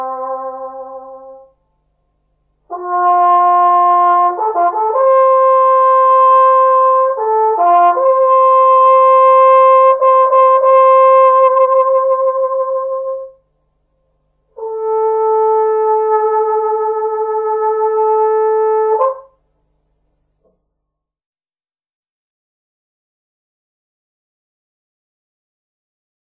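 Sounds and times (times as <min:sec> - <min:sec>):
trumpet bugle call: 0:00.0 - 0:01.5, 0:02.7 - 0:13.4, 0:14.6 - 0:19.4.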